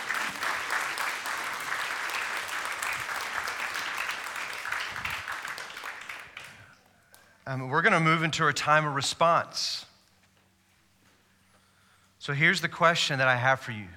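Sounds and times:
audience applause: 0.0s - 6.8s
speech: 7.5s - 9.9s, 12.2s - 13.9s.

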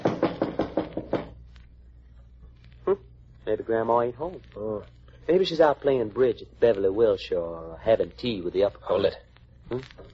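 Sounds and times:
knocking on a door: 0.0s - 1.4s
speech: 2.9s - 10.1s.

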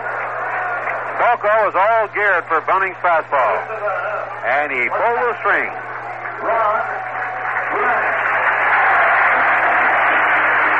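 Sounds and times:
stadium crowd cheering: 0.0s - 10.7s
speech: 1.2s - 5.8s, 6.4s - 7.0s.

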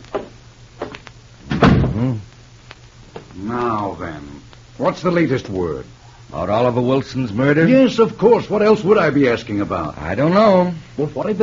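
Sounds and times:
door closing thud: 1.4s - 2.1s
speech: 2.0s - 2.3s, 3.5s - 11.4s.

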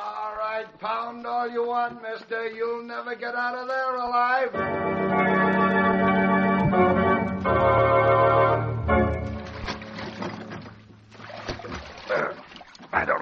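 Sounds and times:
speech: 1.1s - 9.0s
sustained music: 4.5s - 10.7s
rowboat oars splashing through water: 9.2s - 13.2s.

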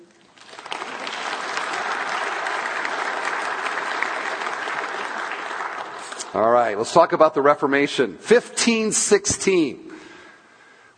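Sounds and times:
crowd applause sound effect: 0.4s - 6.5s
speech: 6.3s - 9.8s.

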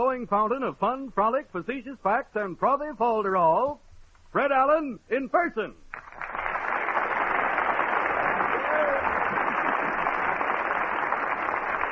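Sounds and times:
speech: 0.0s - 5.9s
audience applause: 5.9s - 11.8s.

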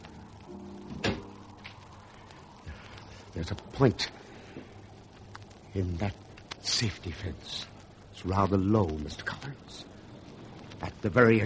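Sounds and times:
low hum: 0.0s - 11.4s
terrace door thumping shut: 0.9s - 1.3s
speech: 3.4s - 4.3s, 5.8s - 9.9s, 10.8s - 11.4s.

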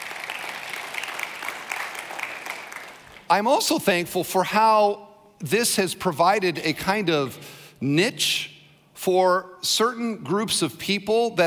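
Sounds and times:
audience clapping: 0.0s - 3.4s
speech: 3.3s - 11.4s.

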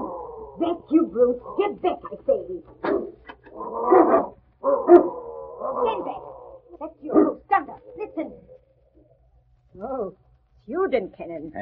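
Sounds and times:
mastiffs barking and growling: 0.0s - 8.6s
speech: 0.6s - 5.1s, 10.9s - 11.6s.

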